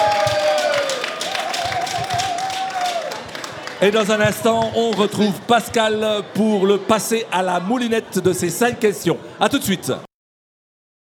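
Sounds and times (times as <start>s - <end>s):
audience applause: 0.0s - 5.1s
speech: 3.8s - 10.1s.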